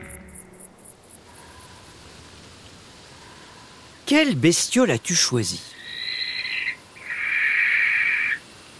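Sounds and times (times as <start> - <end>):
speech: 4.1 - 5.8
barn owl screeching: 5.7 - 8.5.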